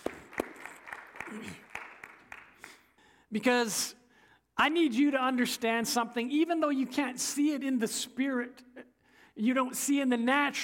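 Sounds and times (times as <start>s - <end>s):
scattered quiet audience applause: 0.0s - 2.9s
speech: 3.3s - 4.0s, 4.6s - 8.7s, 9.4s - 10.6s.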